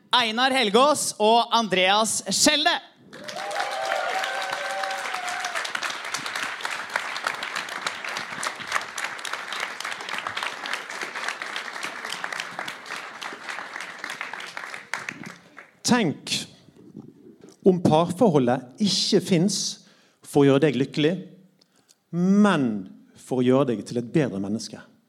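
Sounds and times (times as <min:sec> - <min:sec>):
speech: 0:00.1 - 0:03.5, 0:15.9 - 0:16.4, 0:17.6 - 0:21.4, 0:22.1 - 0:24.9
whistles and cheers: 0:03.1 - 0:05.8
audience applause: 0:03.1 - 0:15.8.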